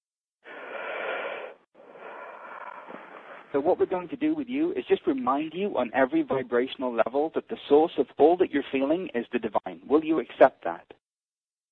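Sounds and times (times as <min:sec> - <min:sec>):
deep breath: 0:00.4 - 0:03.5
speech: 0:03.5 - 0:11.0.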